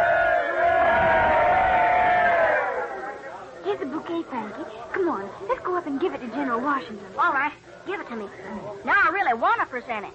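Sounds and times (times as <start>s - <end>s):
crowd cheering hooray: 0.0s - 3.6s
speech: 4.2s - 10.1s.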